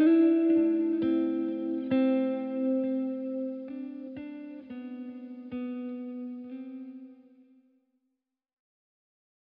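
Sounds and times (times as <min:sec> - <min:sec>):
guitar music: 0:00.0 - 0:07.5.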